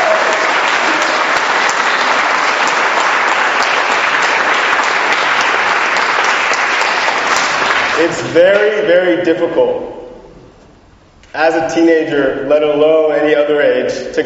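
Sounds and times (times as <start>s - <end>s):
audience applause: 0.0s - 8.2s
speech: 8.0s - 10.0s, 11.4s - 14.2s.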